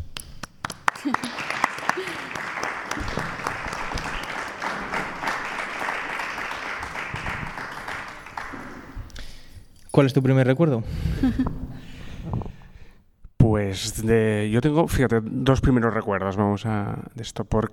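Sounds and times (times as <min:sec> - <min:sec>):
audience applause: 0:00.6 - 0:09.1
speech: 0:01.0 - 0:01.4, 0:10.0 - 0:11.6, 0:13.7 - 0:17.7.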